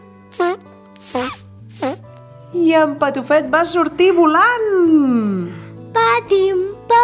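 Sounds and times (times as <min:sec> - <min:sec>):
comic fart sound effect of an ox: 0:00.3 - 0:02.0
speech: 0:02.8 - 0:05.4, 0:06.3 - 0:07.0.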